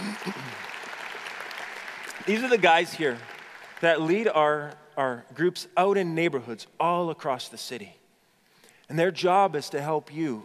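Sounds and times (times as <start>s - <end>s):
audience applause: 0.0s - 4.3s
speech: 2.3s - 8.0s, 8.9s - 10.4s.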